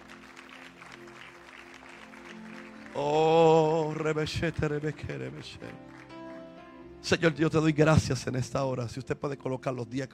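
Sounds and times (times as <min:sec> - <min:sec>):
audience applause: 0:00.0 - 0:06.6
speech: 0:03.0 - 0:03.3, 0:04.0 - 0:06.0, 0:07.1 - 0:10.1.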